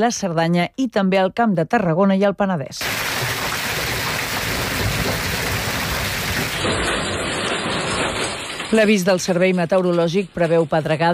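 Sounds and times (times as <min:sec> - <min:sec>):
speech: 0:00.0 - 0:03.1, 0:08.7 - 0:11.1
heavy rain: 0:02.8 - 0:09.4
deep rumbles of thunder: 0:02.8 - 0:10.9.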